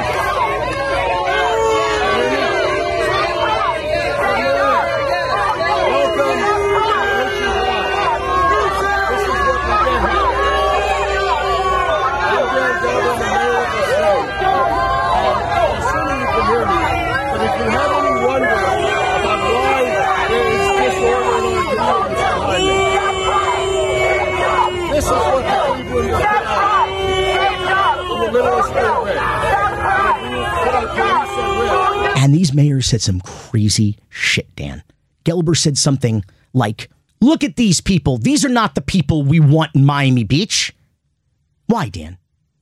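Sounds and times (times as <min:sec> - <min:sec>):
large crowd of protesters shouting: 0:00.0 - 0:32.6
speech: 0:32.9 - 0:40.8, 0:41.7 - 0:42.2.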